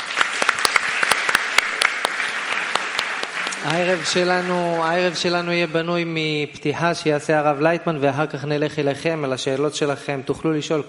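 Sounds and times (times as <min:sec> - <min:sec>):
audience applause: 0:00.0 - 0:05.5
speech: 0:03.6 - 0:10.8.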